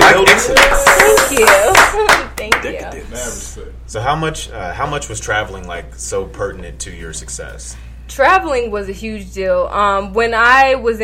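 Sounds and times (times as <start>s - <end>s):
people clapping: 0.0s - 2.8s
speech: 3.9s - 11.0s.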